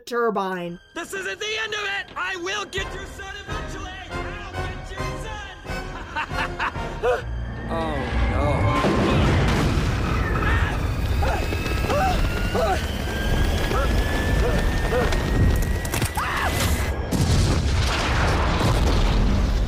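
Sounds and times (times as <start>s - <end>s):
speech: 0.1s - 4.0s, 6.4s - 9.2s
laughter: 5.7s - 7.2s
plane explosion destroying a house: 8.0s - 15.6s, 16.5s - 19.6s.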